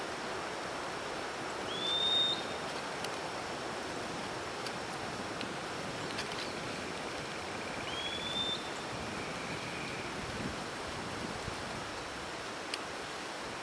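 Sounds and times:
steady background hiss: 0.0s - 13.6s
bird call of thin high slightly rising whistles: 1.7s - 2.6s, 7.6s - 10.1s.

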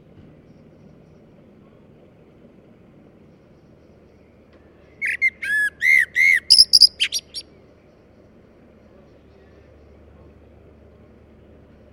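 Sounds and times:
common blackbird singing: 4.8s - 7.6s.

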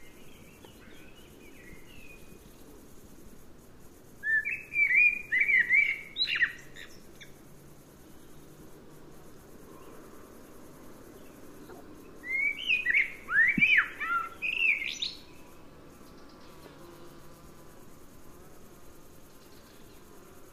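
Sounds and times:
faint low hiss: 0.0s - 20.5s
common blackbird singing: 4.2s - 7.0s, 12.2s - 15.2s.

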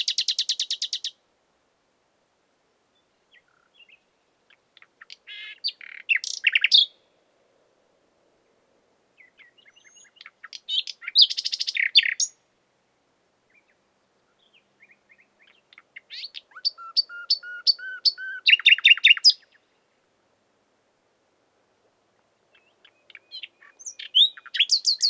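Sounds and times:
Common nightingale singing: 0.0s - 1.2s, 3.0s - 7.0s, 9.2s - 12.4s, 13.5s - 19.8s, 22.5s - 25.0s
light background hiss: 0.0s - 25.0s.

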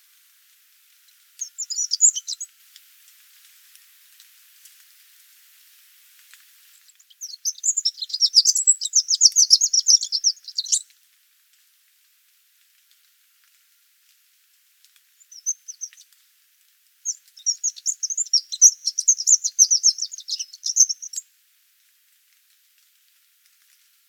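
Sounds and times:
Eurasian wren song of trilled notes: 1.4s - 2.5s, 7.0s - 10.8s, 15.2s - 16.0s, 17.0s - 21.2s.

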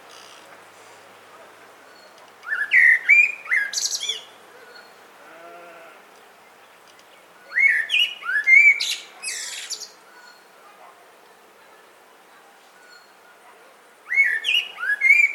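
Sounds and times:
Common blackbird (Turdus merula) singing: 1.9s - 5.0s, 6.4s - 10.6s, 14.1s - 15.3s.

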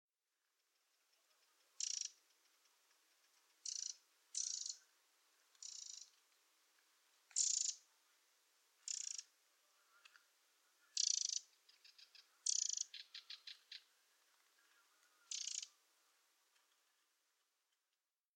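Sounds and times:
Eurasian wren rattling calls: 1.2s - 4.8s, 5.6s - 6.1s, 7.3s - 7.8s, 8.8s - 9.3s, 10.9s - 13.9s, 15.3s - 15.7s.

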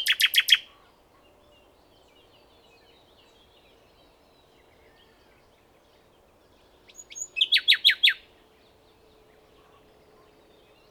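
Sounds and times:
common nightingale singing: 0.0s - 0.7s, 6.9s - 8.2s.

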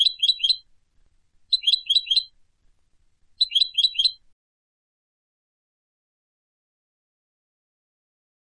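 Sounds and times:
European goldfinch Carduelis carduelis rapid bright chirps: 0.0s - 0.7s, 1.5s - 2.4s, 3.4s - 4.3s.

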